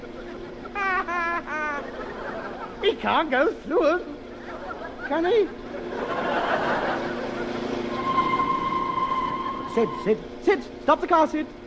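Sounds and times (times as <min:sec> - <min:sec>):
laughter: 0:00.0 - 0:08.3
speech: 0:02.8 - 0:04.2, 0:05.1 - 0:06.3, 0:09.8 - 0:11.6
train approaching a level crossing: 0:05.6 - 0:10.8
high train whistle: 0:07.9 - 0:10.3.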